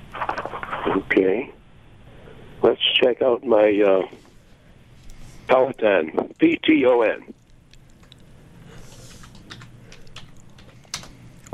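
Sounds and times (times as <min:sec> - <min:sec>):
speech: 0:01.0 - 0:01.6, 0:02.6 - 0:04.2, 0:05.5 - 0:07.4
typing on a computer keyboard: 0:08.9 - 0:11.2.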